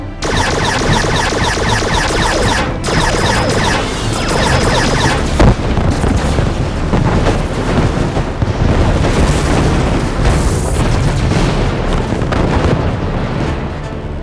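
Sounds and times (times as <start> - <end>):
sci-fi spaceship laser cannon fire: 0.2 - 13.5
heavy booming explosions: 0.2 - 14.0.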